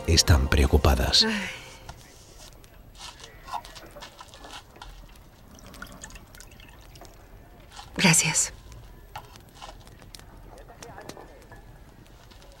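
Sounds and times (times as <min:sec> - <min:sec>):
speech: 0:00.1 - 0:01.6, 0:08.0 - 0:08.6
water poured into a cup: 0:05.0 - 0:07.4.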